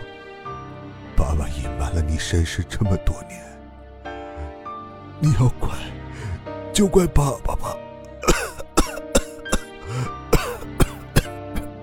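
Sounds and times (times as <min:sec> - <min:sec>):
speech: 0:01.4 - 0:03.5, 0:05.2 - 0:06.0, 0:06.8 - 0:07.8
coughing fit: 0:08.1 - 0:11.7.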